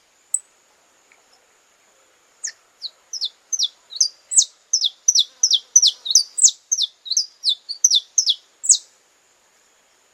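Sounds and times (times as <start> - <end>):
Belgian canary singing: 2.4 - 8.9.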